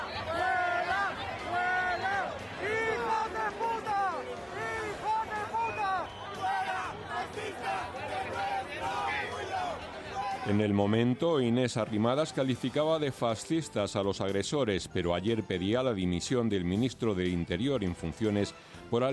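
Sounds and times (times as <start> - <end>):
babble of voices: 0.0 - 10.5
crowd of protesters shouting at a march: 0.0 - 10.7
speech: 10.5 - 19.1.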